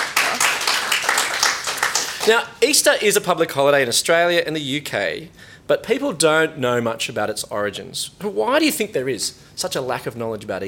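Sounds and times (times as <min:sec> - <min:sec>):
round of applause: 0:00.0 - 0:02.4
speech: 0:02.3 - 0:10.6.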